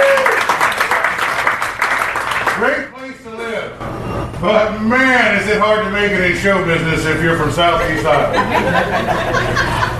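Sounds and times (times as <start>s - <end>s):
audience applauding: 0.0s - 2.8s
speech: 4.4s - 9.9s
laughter: 8.1s - 9.9s.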